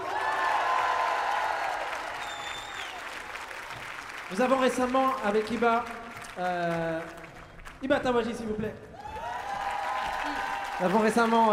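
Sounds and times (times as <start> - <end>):
audience applauding a singer: 0.0 - 11.5
speech: 4.3 - 7.2, 7.8 - 8.9, 10.8 - 11.5.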